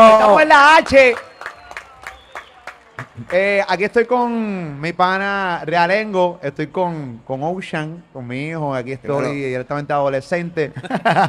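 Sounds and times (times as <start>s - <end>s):
studio audience applause: 0.0s - 4.4s
speech: 0.4s - 1.3s, 3.2s - 11.2s
laughter: 3.0s - 3.4s, 10.7s - 11.2s.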